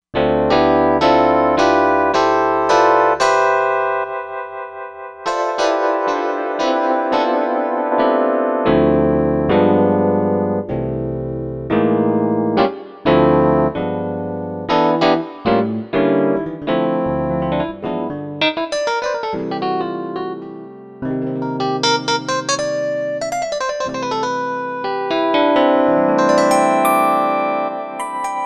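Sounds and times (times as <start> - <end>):
ring modulated electric piano: 0.2 - 28.4.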